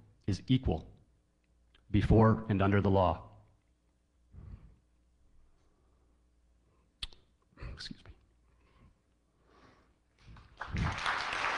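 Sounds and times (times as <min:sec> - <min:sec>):
speech: 0:00.3 - 0:00.9, 0:01.9 - 0:03.3, 0:07.8 - 0:08.0
audience clapping: 0:10.3 - 0:11.5.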